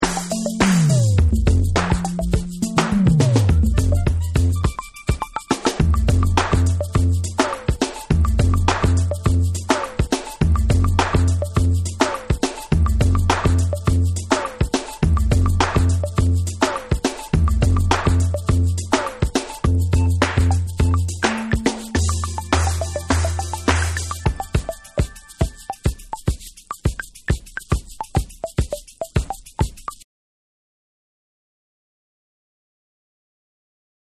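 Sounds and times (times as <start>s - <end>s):
extended instrumental music: 0.0s - 30.0s.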